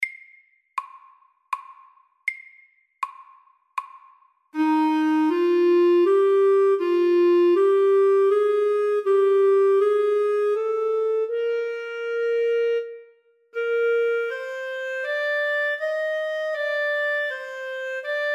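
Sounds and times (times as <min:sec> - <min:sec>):
etude: 0:04.6 - 0:18.3.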